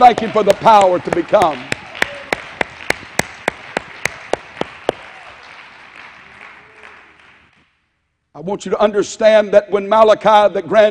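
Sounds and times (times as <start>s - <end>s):
speech: 0.0s - 1.7s, 8.4s - 10.8s
audience clapping hands in unison: 0.0s - 7.8s.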